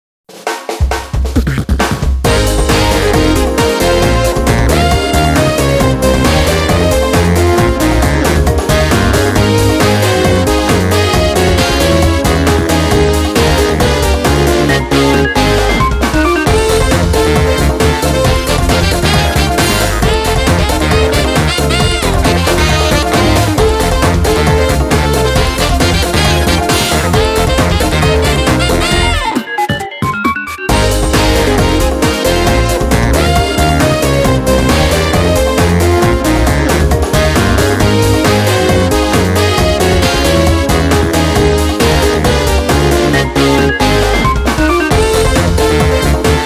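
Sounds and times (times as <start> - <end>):
music: 0.3 - 46.4.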